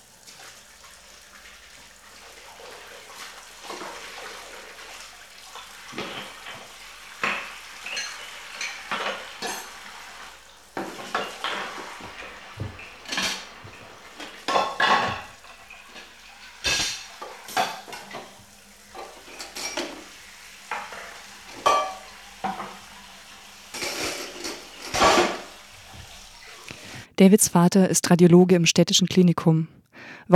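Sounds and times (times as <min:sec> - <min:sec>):
running water: 0:00.0 - 0:27.1
dishes and cutlery clattering during washing-up: 0:05.6 - 0:22.9, 0:23.7 - 0:25.6
speech: 0:27.2 - 0:29.7.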